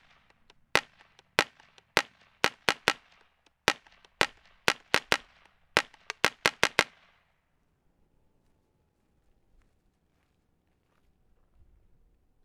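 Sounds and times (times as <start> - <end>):
shotgun shot: 0.0 - 7.1.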